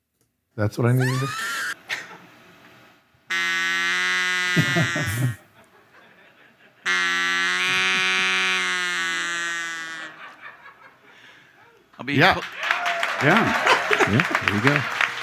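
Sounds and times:
speech: 0.6 - 1.6, 4.6 - 5.4, 12.1 - 12.6, 13.2 - 15.2
laughter: 1.0 - 2.3, 4.6 - 8.5, 9.8 - 15.2
duck call being blown: 3.3 - 5.4, 6.8 - 10.5.

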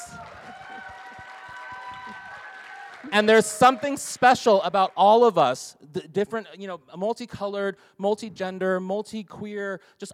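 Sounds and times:
audience applause: 0.0 - 5.4
people cheering: 0.0 - 5.6
speech: 3.0 - 10.1.

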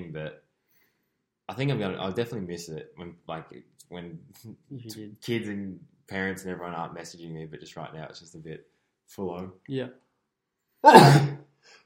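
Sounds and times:
speech: 0.1 - 0.5, 1.5 - 10.0, 10.8 - 11.8
sneeze: 10.8 - 11.4.

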